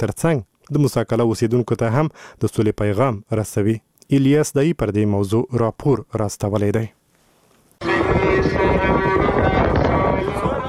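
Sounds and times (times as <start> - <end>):
speech: 0.0 - 7.0
strong wind whipping up dust in Helmand: 7.8 - 10.6.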